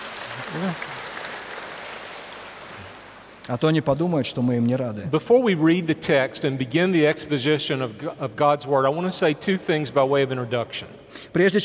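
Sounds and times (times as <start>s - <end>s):
audience applause welcoming guests during a sermon: 0.0s - 3.4s
speech: 0.5s - 1.0s, 3.5s - 11.6s.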